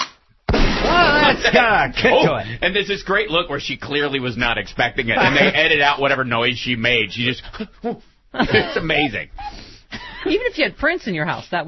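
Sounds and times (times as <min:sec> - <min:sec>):
gun blast: 0:00.0 - 0:02.2
laughter: 0:01.0 - 0:02.6, 0:05.0 - 0:05.9, 0:07.4 - 0:10.4
speech: 0:01.3 - 0:11.6.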